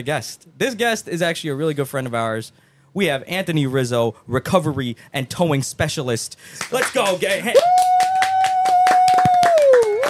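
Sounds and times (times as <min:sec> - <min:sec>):
speech: 0:00.0 - 0:08.0
hand claps: 0:06.6 - 0:10.0.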